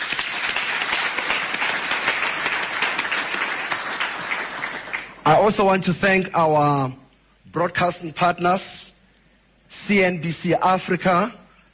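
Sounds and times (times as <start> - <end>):
audience applause: 0.0 - 5.2
speech: 5.3 - 7.0, 7.6 - 9.0, 9.7 - 11.4.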